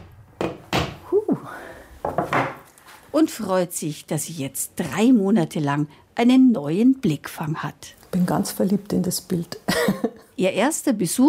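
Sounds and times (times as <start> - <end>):
hammer driving a nail into a wall: 0.0 - 1.0
speech: 3.1 - 11.2.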